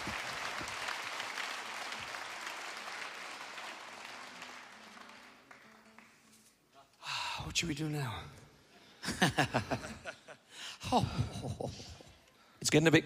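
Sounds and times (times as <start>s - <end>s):
audience clapping: 0.0s - 6.6s
speech: 7.5s - 8.4s, 9.1s - 10.2s, 10.8s - 11.9s, 12.7s - 13.0s
laughter: 9.0s - 12.2s.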